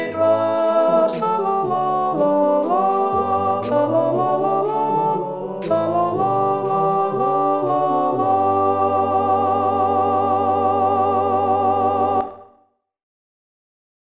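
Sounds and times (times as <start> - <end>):
alto part: 0.0 - 12.5.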